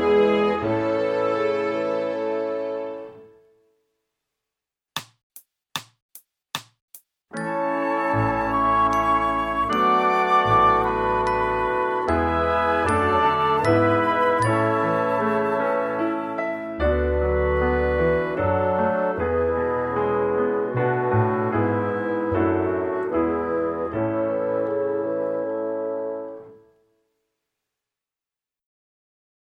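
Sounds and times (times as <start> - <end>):
string instruments sight reading: 0.0 - 3.2, 7.4 - 25.6.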